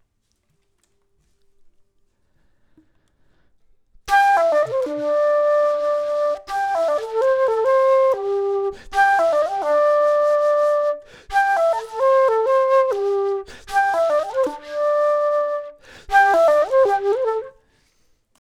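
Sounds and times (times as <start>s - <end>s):
flute: 4.1s - 17.8s.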